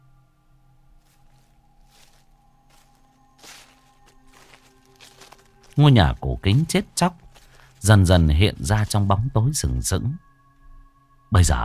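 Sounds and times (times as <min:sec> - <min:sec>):
footsteps crunching on dry leaves: 0:01.0 - 0:09.9
speech: 0:05.8 - 0:07.2, 0:07.8 - 0:10.3, 0:11.3 - 0:11.6.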